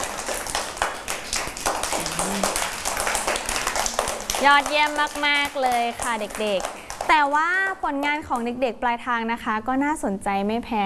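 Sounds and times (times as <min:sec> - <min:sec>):
clapping hands: 0:00.0 - 0:07.4
speech: 0:04.4 - 0:10.8.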